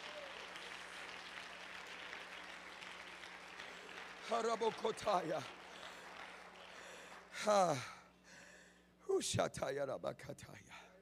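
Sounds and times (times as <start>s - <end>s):
audience clapping hands: 0.0s - 7.5s
speech: 4.3s - 5.6s, 7.4s - 8.0s, 9.1s - 10.9s.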